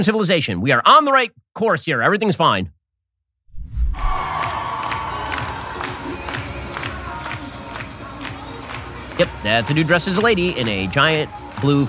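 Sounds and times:
speech: 0:00.0 - 0:02.8, 0:09.2 - 0:11.8
people cheering in the Minnesota state capitol: 0:04.0 - 0:11.8.

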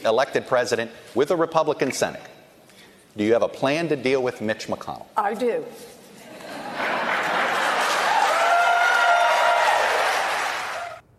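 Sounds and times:
speech: 0:00.0 - 0:02.4, 0:03.2 - 0:06.0
laughter: 0:06.2 - 0:08.1
crowd applauding: 0:06.8 - 0:11.0
people cheering: 0:07.2 - 0:11.0.

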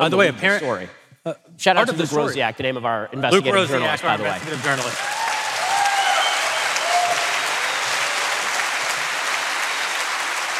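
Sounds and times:
speech: 0:00.0 - 0:05.1
audience applause for journalist: 0:03.7 - 0:10.5.

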